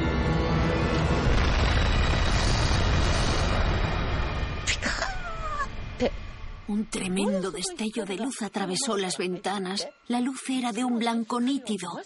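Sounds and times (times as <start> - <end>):
atomic bomb explosion over Hiroshima sound effect: 0.1 - 7.1
speech: 6.0 - 12.0.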